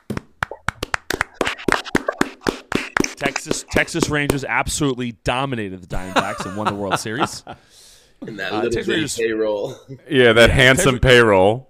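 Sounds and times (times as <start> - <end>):
hand clapping: 0.0 - 4.5
speech: 3.2 - 11.6
laughter: 5.9 - 7.6.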